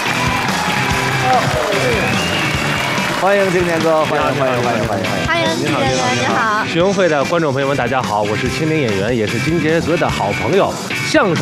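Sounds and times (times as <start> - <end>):
audience applause welcoming a guest: 0.0 - 6.3
speech: 1.3 - 2.4, 3.2 - 11.4.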